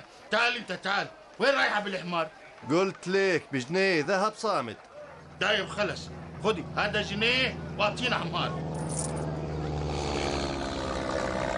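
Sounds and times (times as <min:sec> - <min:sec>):
speech: 0:00.3 - 0:08.7
airplane flying overhead with propeller-engine drone: 0:05.0 - 0:11.5.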